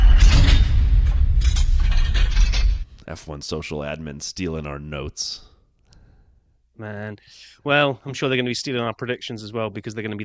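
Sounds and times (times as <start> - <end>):
door closing: 0.0 - 3.0
speech: 3.1 - 5.5, 6.8 - 10.2.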